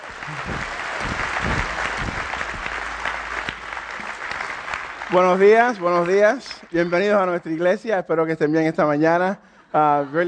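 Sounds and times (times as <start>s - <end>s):
congregation at a church service applauding to welcome a pastor: 0.0s - 7.6s
soft low thumps: 0.3s - 3.6s
speech: 5.1s - 10.2s.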